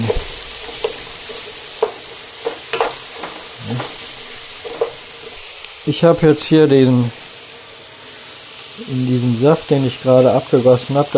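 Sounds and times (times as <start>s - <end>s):
clicks and scrapes of peppers being stirred: 0.0s - 5.7s
cut bell peppers frying in oil in a pan: 0.0s - 11.1s
speech: 5.9s - 7.2s, 8.9s - 11.1s.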